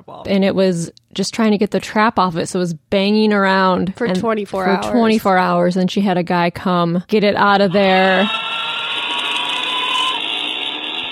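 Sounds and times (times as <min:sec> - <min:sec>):
speech: 0:00.1 - 0:08.4
scary sound effect: 0:07.7 - 0:11.1.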